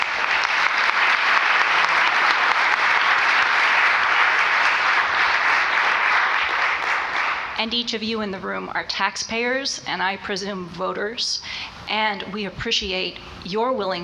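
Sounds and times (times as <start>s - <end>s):
crowd applauding: 0.0s - 7.6s
speech: 7.6s - 14.0s.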